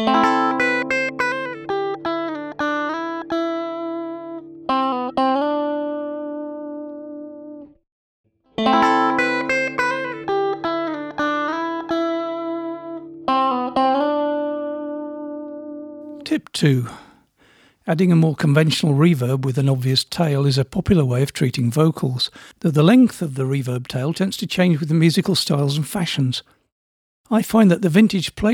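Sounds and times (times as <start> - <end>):
plucked musical phrase, dry then with ambience reverb: 0.0 - 7.6, 8.6 - 15.6
speech: 16.4 - 17.0, 17.9 - 26.6, 27.3 - 28.5.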